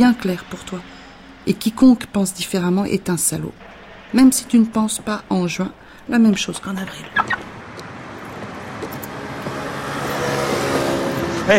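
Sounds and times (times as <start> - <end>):
speech: 0.0 - 7.5
car driving: 0.0 - 11.5.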